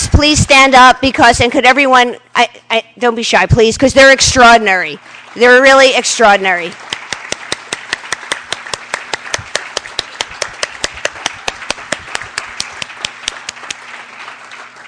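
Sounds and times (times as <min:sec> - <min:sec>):
speech: 0:00.2 - 0:07.0
audience applauding: 0:05.0 - 0:05.6, 0:06.7 - 0:14.8.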